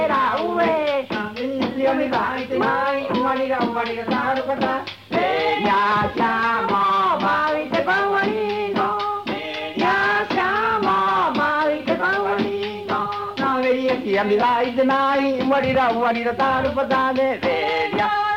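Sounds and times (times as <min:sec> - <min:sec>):
Rapa Nui music: 0:00.0 - 0:18.3.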